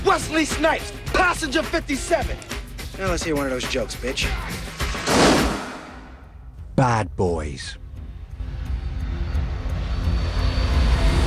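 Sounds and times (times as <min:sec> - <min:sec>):
speech: 0:00.1 - 0:04.7, 0:06.8 - 0:07.8
airliner flying low over Miami: 0:08.3 - 0:11.2.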